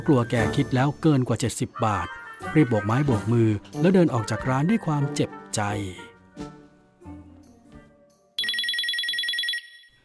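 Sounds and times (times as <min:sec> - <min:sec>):
speech: 0:00.0 - 0:06.5
mobile phone ringtone: 0:08.4 - 0:10.0.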